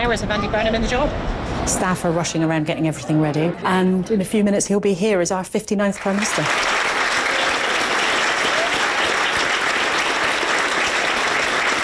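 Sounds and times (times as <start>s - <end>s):
speech: 0.1s - 6.8s
crowd clapping: 6.0s - 11.8s.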